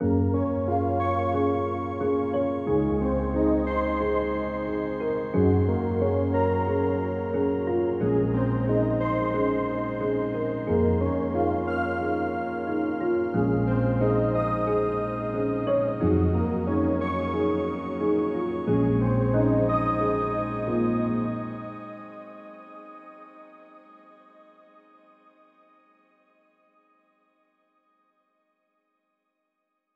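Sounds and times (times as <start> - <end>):
melody: 0.0 - 22.3.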